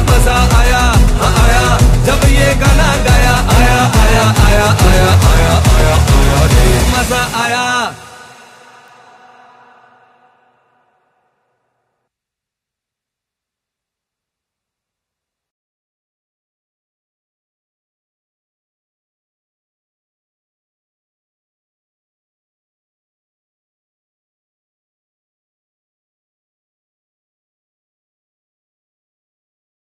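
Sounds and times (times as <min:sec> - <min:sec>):
cricket anthem music: 0:00.0 - 0:10.1.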